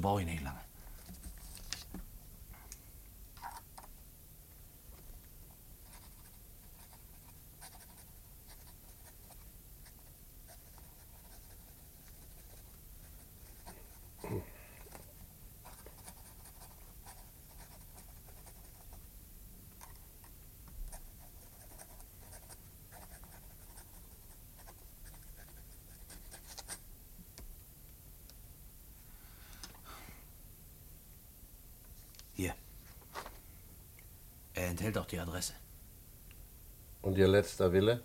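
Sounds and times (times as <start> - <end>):
speech: 0.0 - 0.6, 32.4 - 32.6, 34.6 - 35.6, 37.0 - 38.0
continuous low noise: 0.0 - 38.0
pen scratching on paper writing a letter: 5.8 - 14.2, 15.6 - 19.0, 20.9 - 26.8.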